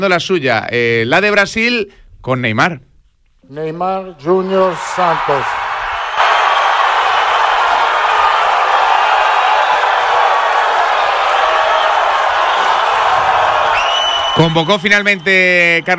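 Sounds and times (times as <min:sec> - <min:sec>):
speech: 0:00.0 - 0:02.9, 0:03.5 - 0:05.6, 0:14.4 - 0:15.9
crowd applause: 0:04.4 - 0:15.9.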